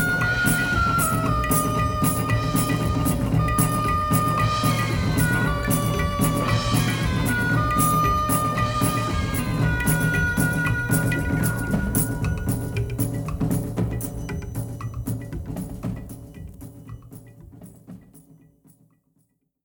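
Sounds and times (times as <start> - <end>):
orchestra: 0.0 - 14.1
drums of India: 0.0 - 19.1.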